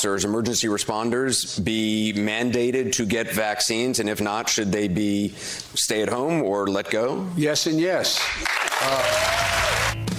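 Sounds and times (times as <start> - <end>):
speech: 0.0 - 9.7
crowd clapping: 8.2 - 10.0.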